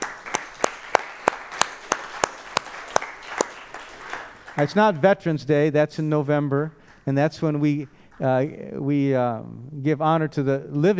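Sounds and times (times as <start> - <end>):
audience clapping: 0.0 - 5.0
speech: 4.6 - 10.9.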